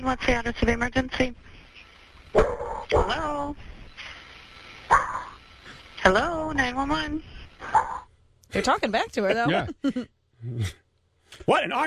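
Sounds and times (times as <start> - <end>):
speech: 0.0 - 1.6, 2.3 - 3.7, 6.0 - 11.8
dog barking over a phone line: 4.9 - 5.3.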